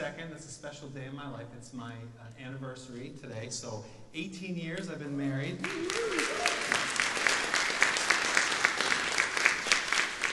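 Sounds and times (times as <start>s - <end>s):
speech: 0.2s - 7.0s
audience applause: 5.6s - 10.3s.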